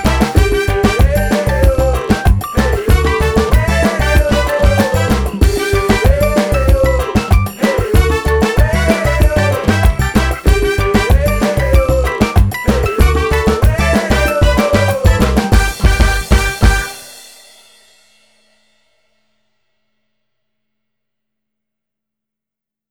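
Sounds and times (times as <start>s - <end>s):
beach party instrumental music: 0.0s - 17.4s.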